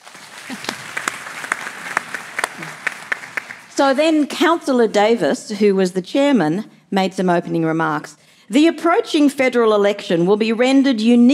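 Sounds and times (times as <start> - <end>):
audience applause: 0.0 - 3.8
speech: 2.6 - 2.8, 3.8 - 11.3.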